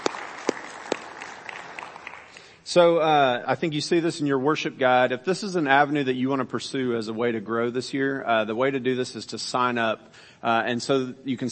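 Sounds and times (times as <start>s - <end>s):
audience applauding: 0.0s - 2.6s
sharp loud claps: 0.0s - 2.6s
speech: 2.7s - 11.5s.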